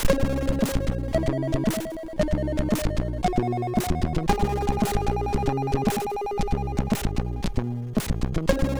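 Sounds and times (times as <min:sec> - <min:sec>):
chiptune music on a MOS6581R2 sound chip: 0:00.2 - 0:08.7.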